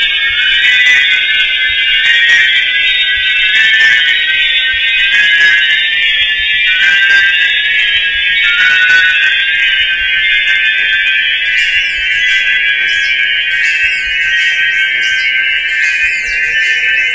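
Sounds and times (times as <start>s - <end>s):
jaw harp: 0.0s - 17.1s.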